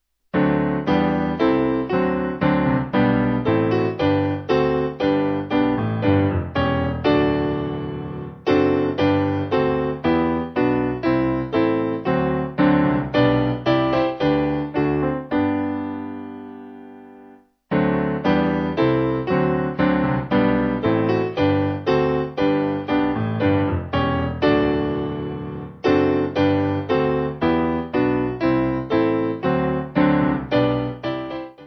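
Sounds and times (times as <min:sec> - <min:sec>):
piano backing music for churches: 0:00.4 - 0:31.6.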